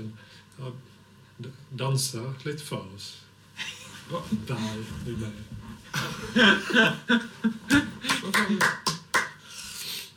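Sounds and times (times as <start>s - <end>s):
speech: 0.0s - 8.9s
laughter: 5.9s - 8.8s
hand clapping to set a rhythm: 7.7s - 9.4s.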